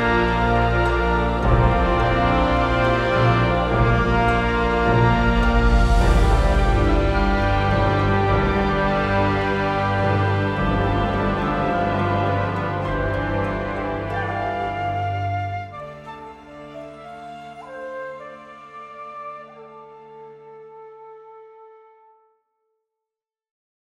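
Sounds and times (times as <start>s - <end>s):
suspense music: 0.0s - 18.5s.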